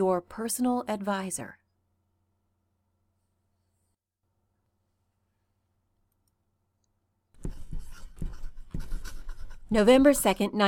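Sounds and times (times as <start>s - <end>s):
speech: 0.0s - 1.6s, 9.7s - 10.6s
pen writing on paper: 7.4s - 9.9s.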